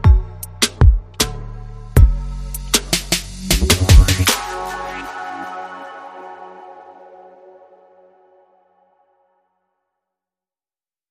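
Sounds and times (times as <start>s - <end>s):
drums: 0.0s - 1.3s, 2.0s - 4.8s
bass: 0.0s - 5.3s.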